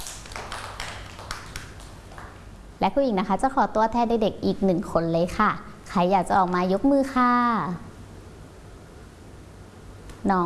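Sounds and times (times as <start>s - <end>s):
children clapping hands: 0.0s - 2.4s
speech: 2.8s - 7.9s, 10.2s - 10.4s.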